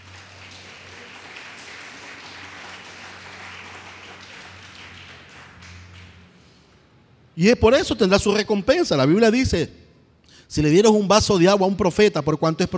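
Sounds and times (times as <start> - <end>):
audience applauding: 0.0 - 6.4
speech: 7.4 - 9.8, 10.5 - 12.7.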